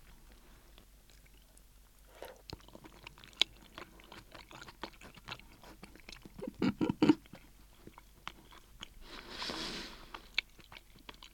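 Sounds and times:
chewing and biting on plain boiled tofu: 0.0 - 9.2, 10.0 - 11.3
breathy rustle: 9.0 - 10.3.

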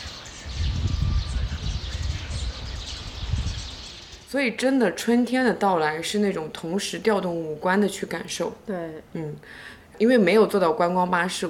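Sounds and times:
many birds chirping and twittering in a city park: 0.0 - 8.5
speech: 4.3 - 11.4.

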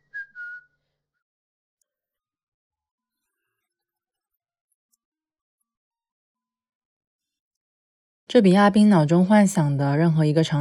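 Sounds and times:
person whistling a tune: 0.0 - 0.8
speech: 8.3 - 10.5.

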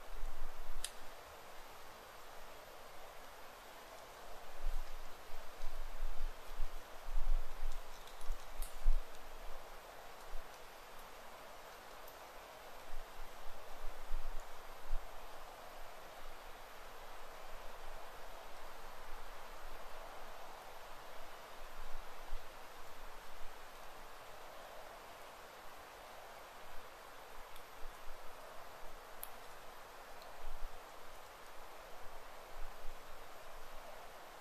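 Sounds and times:
hiss of air and leaves in a wild thicket: 0.0 - 34.3
tiny sharp ticks: 0.8 - 1.0, 7.6 - 9.3, 10.1 - 11.2, 12.0 - 12.3, 27.5 - 28.1, 29.2 - 30.4.

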